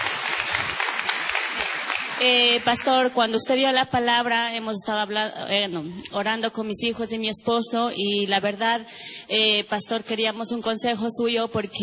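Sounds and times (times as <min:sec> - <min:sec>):
church congregation clapping: 0:00.0 - 0:03.1
speech: 0:02.2 - 0:11.8.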